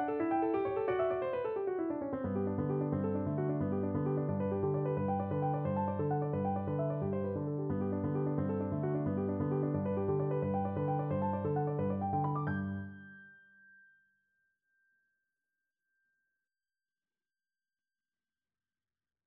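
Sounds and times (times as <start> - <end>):
courant played on piano: 0.0 - 13.4.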